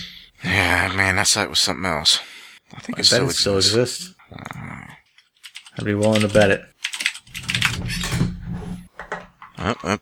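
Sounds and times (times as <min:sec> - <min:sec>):
speech: 0:00.5 - 0:04.8, 0:05.8 - 0:06.7, 0:09.6 - 0:10.0
typing on a keyboard: 0:05.3 - 0:07.8.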